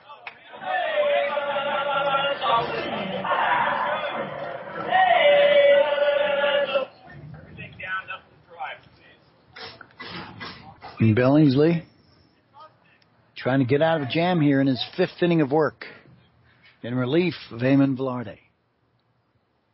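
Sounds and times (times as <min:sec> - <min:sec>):
baseball stadium crowd murmuring: 0:00.0 - 0:11.1, 0:13.6 - 0:15.2
baseball stadium crowd laughter: 0:01.3 - 0:05.8
speech: 0:11.0 - 0:11.9, 0:13.4 - 0:16.0, 0:16.8 - 0:18.4.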